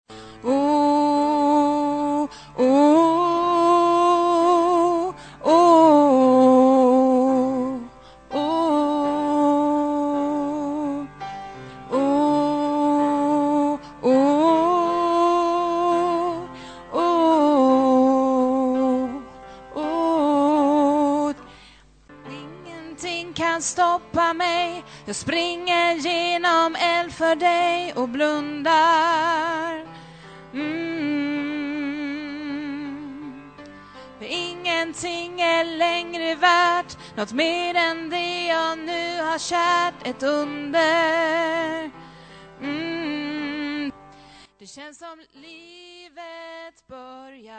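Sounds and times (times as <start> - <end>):
soprano voice: 0.4 - 11.2, 11.9 - 21.5, 22.2 - 29.9, 30.5 - 42.0, 42.6 - 47.5.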